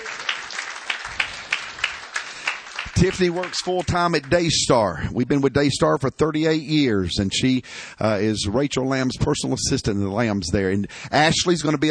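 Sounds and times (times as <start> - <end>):
audience applause in a church: 0.0 - 4.7
speech: 3.0 - 11.9.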